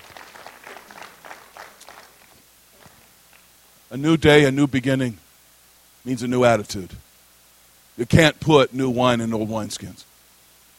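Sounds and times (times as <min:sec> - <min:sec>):
audience clapping: 0:00.0 - 0:03.5
speech: 0:03.9 - 0:05.2, 0:06.0 - 0:07.0, 0:08.0 - 0:10.1.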